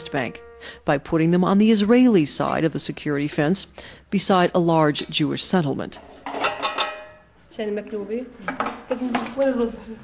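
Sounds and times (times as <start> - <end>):
speech: 0.0 - 6.4, 7.6 - 10.0
pots and pans clattering on a stove while cooking maklube chicken dish: 6.0 - 7.2.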